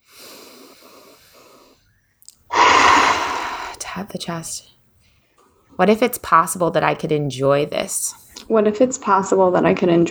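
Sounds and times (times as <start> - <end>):
deep breath during a guided self-reflection exercise: 0.0 - 4.0
speech: 3.9 - 4.8, 5.8 - 10.0.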